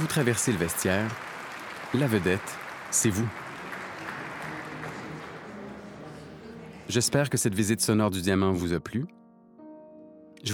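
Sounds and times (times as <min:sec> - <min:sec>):
recorded applause from a crowd: 0:00.0 - 0:06.9
speech: 0:00.1 - 0:03.4, 0:06.9 - 0:09.2.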